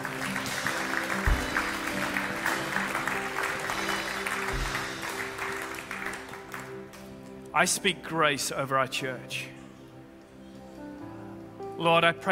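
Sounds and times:
audience applauding: 0.0 - 7.2
speech: 7.6 - 9.6, 11.8 - 12.3.

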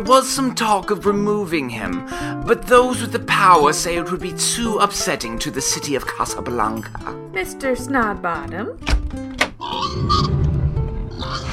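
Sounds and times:
speech: 0.0 - 9.2
pigs oinking: 9.6 - 10.4, 11.1 - 11.5.

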